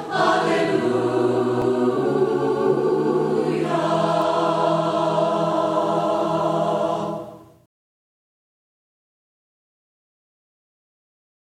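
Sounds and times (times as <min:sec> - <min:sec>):
voices singing hymns a cappella: 0:00.0 - 0:07.6.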